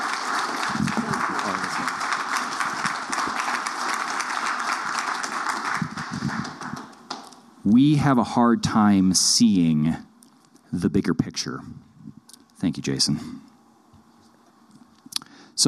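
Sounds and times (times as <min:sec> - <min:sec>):
audience applause: 0:00.0 - 0:07.3
speech: 0:07.7 - 0:10.1, 0:10.7 - 0:11.8, 0:12.6 - 0:13.4.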